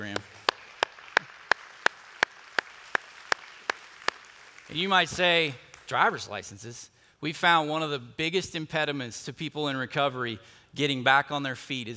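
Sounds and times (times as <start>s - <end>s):
audience clapping: 0.0s - 6.2s
speech: 4.7s - 11.9s.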